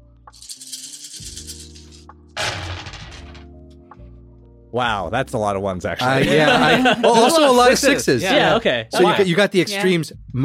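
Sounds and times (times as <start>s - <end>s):
dice rattling across a hard surface: 0.4s - 3.4s
speech: 4.7s - 10.4s
laughter: 6.0s - 8.6s.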